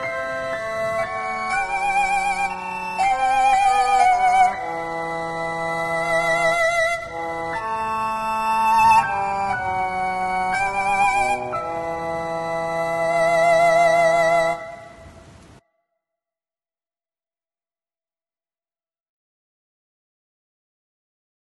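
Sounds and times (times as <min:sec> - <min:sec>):
classical music: 0:00.0 - 0:15.6.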